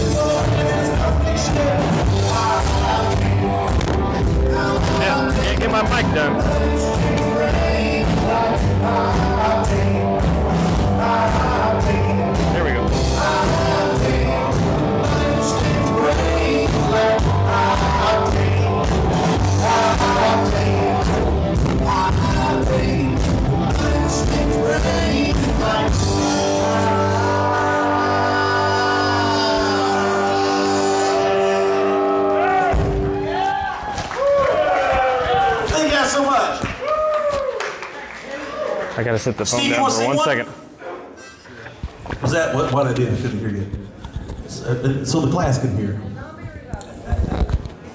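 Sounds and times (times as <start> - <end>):
drums pounding: 0.0 - 26.6, 32.6 - 33.4
singing: 0.0 - 32.8
guitar: 0.0 - 36.1
crowd noise: 0.0 - 47.9
speech: 39.2 - 40.5, 42.7 - 43.6, 44.8 - 46.2.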